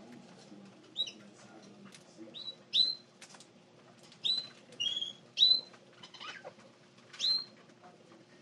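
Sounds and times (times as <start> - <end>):
parrots in a pet shop: 0.2 - 3.4, 4.0 - 7.7
budgies in a pet shop: 0.8 - 3.1, 4.2 - 7.6.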